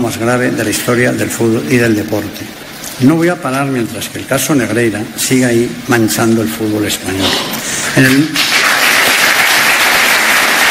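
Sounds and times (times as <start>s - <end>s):
speech: 0.0s - 8.6s
audience ovation during a speech: 8.0s - 10.7s.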